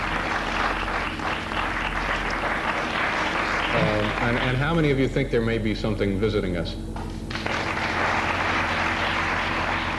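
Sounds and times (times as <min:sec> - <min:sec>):
large audience applause: 0:00.0 - 0:04.8, 0:07.3 - 0:09.9
speech: 0:04.0 - 0:07.0.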